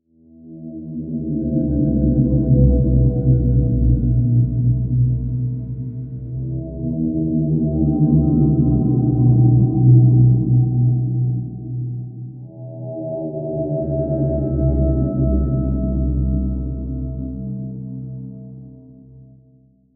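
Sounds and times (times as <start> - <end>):
dark ambient guitar drone in E and C: 0.4 - 19.3.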